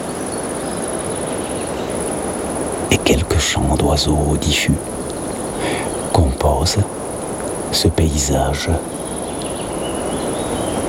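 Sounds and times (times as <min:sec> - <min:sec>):
outdoor hiss: 0:00.0 - 0:10.8
high-pitched insect trilling: 0:00.3 - 0:10.8
speech: 0:02.9 - 0:05.0, 0:05.6 - 0:07.0, 0:07.7 - 0:09.0.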